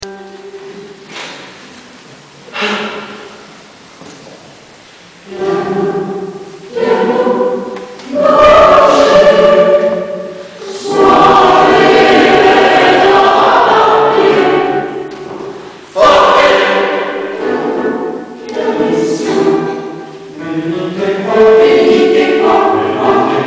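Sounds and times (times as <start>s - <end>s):
choir singing: 5.2s - 23.4s.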